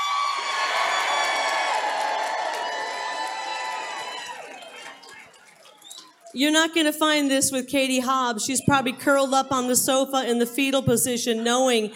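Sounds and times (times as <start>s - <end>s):
crowd cheering and whooping at a political rally: 0.0s - 6.4s
speech: 6.3s - 11.9s.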